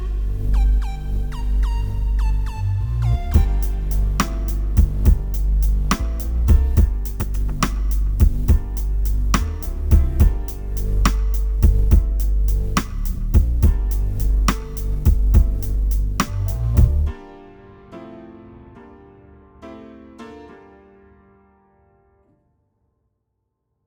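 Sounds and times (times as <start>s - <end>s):
fast music at 210 bpm: 0.0s - 17.1s.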